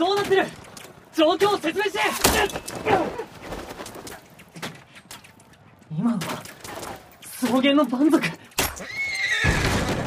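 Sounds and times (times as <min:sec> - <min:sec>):
speech: 0:00.0 - 0:00.6, 0:01.2 - 0:03.4, 0:05.9 - 0:06.5, 0:07.4 - 0:08.9
carriage horse whinnying: 0:08.6 - 0:09.9.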